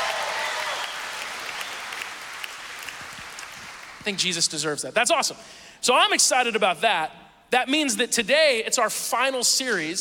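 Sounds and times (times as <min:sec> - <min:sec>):
audience wooing: 0:00.0 - 0:02.9
audience applause: 0:00.0 - 0:04.2
speech: 0:04.0 - 0:09.9.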